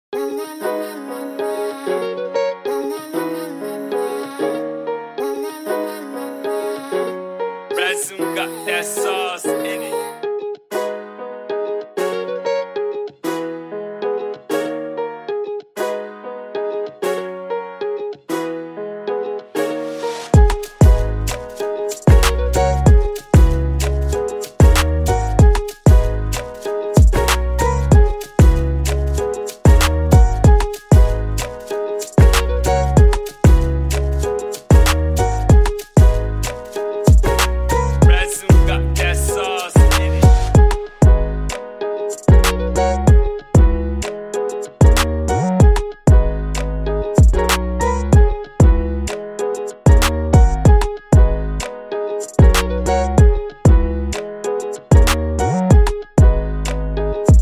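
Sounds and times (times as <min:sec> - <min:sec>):
afrobeat type beat: 0:07.8 - 0:09.9, 0:20.3 - 0:57.4.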